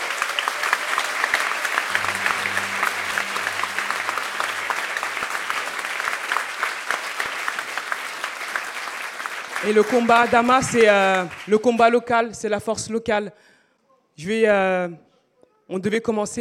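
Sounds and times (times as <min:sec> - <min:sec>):
sustained audience applause: 0:00.0 - 0:11.6
speech: 0:09.6 - 0:13.5, 0:14.2 - 0:15.1, 0:15.7 - 0:16.3.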